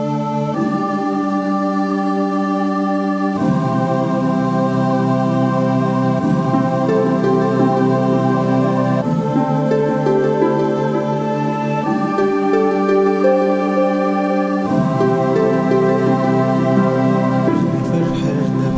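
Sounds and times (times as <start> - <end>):
Pharaonic song: 0.1 - 18.7.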